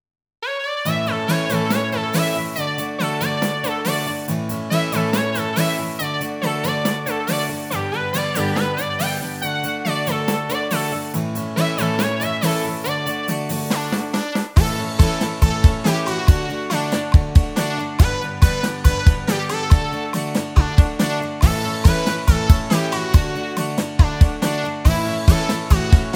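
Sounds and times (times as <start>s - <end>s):
karaoke singing: 0.9s - 26.1s.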